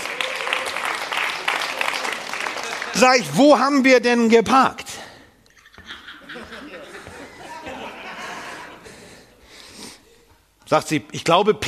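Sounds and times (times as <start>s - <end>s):
audience clapping: 0.0s - 3.8s
laughter: 2.1s - 3.3s, 5.5s - 9.4s
speech: 3.0s - 4.8s, 10.7s - 11.6s.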